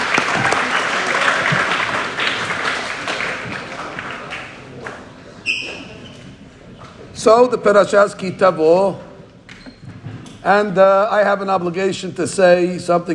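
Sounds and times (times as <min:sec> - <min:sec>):
audience applause: 0:00.0 - 0:04.9
speech: 0:07.2 - 0:09.1, 0:10.4 - 0:13.1.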